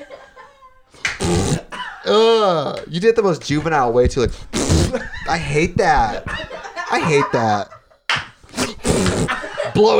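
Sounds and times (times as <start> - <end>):
laughter: 0.0 - 1.0, 4.7 - 8.0, 8.6 - 9.9
fart noise effect: 1.0 - 1.7, 4.4 - 5.8, 8.5 - 9.4
speech: 1.3 - 7.8, 9.3 - 9.9.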